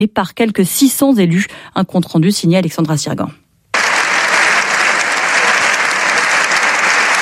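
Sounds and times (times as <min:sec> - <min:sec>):
speech: 0:00.0 - 0:03.4
sustained applause in parliament: 0:03.8 - 0:07.2.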